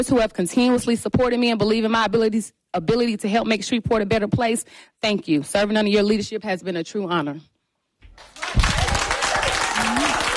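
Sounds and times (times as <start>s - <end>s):
speech: 0.0s - 7.5s
audience applause: 8.1s - 10.3s.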